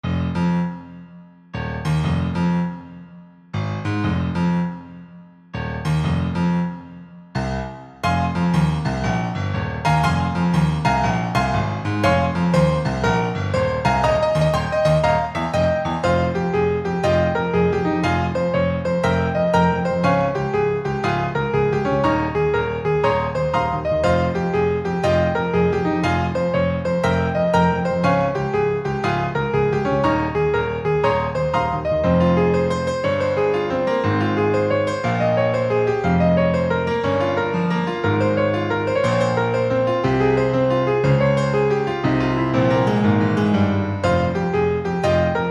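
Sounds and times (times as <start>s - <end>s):
piano: 0.0s - 45.5s.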